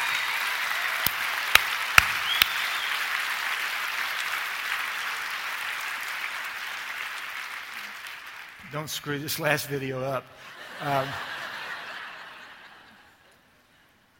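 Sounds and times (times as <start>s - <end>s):
crowd clapping: 0.0s - 8.7s
speech: 8.7s - 11.3s
laughter: 10.5s - 13.2s.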